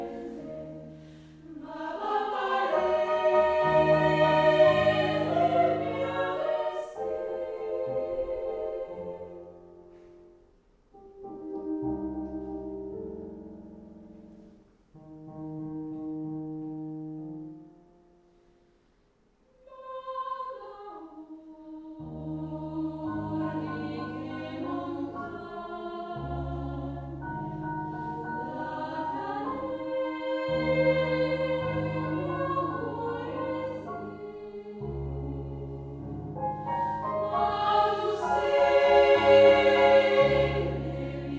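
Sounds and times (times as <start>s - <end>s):
female choir singing: 0.0s - 9.8s, 19.6s - 41.3s.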